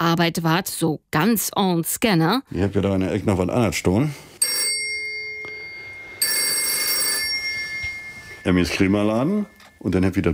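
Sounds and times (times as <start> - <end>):
speech: 0.1 - 4.3, 8.4 - 10.3
telephone ringing with electronic tones: 4.4 - 10.3.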